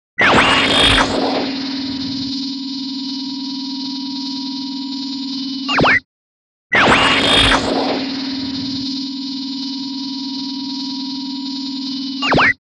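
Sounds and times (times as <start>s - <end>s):
laser shots: 0.2s - 2.3s, 6.8s - 8.9s
stun gun zapping: 0.2s - 2.4s, 6.8s - 9.2s.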